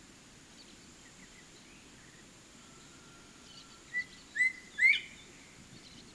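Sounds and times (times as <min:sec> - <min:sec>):
Colinus cristatus crested bobwhite calling: 0:02.7 - 0:05.4.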